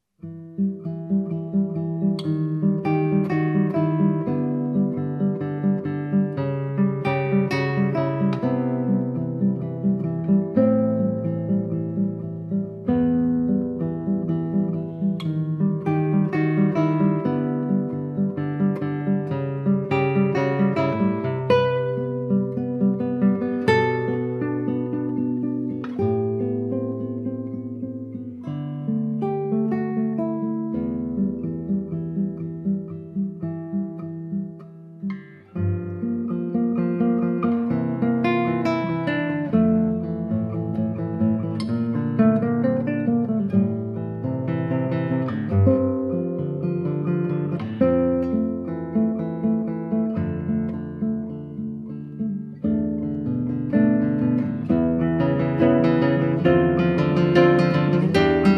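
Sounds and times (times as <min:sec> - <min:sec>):
classical guitar piece in E minor: 0:00.0 - 0:58.5.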